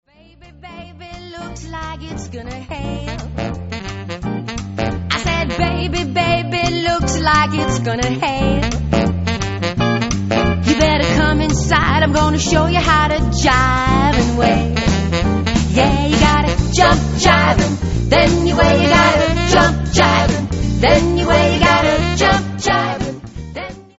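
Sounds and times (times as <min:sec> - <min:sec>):
jump jive music: 0:00.6 - 0:23.9.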